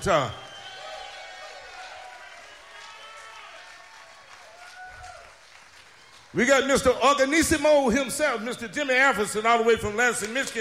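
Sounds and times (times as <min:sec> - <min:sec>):
speech: 0:00.0 - 0:00.4, 0:06.3 - 0:10.5
audience applause: 0:00.0 - 0:06.7.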